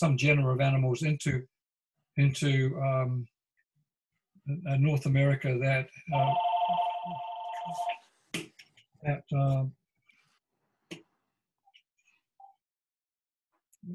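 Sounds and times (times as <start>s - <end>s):
speech: 0.0s - 1.5s, 2.2s - 3.3s, 4.5s - 8.4s, 9.0s - 9.8s
telephone ringing with an electronic trill: 6.1s - 8.0s.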